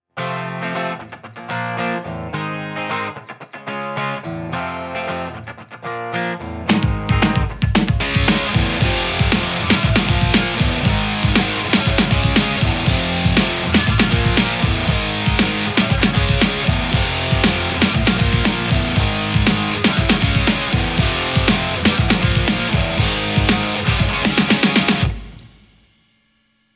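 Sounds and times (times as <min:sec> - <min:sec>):
Telecaster electric guitar: 0:00.2 - 0:25.5.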